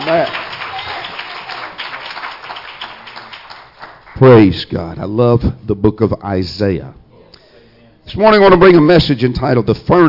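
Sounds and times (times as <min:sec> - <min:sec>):
crowd applauding: 0:00.0 - 0:04.6
speech: 0:00.1 - 0:00.4, 0:04.2 - 0:07.0, 0:08.1 - 0:10.0.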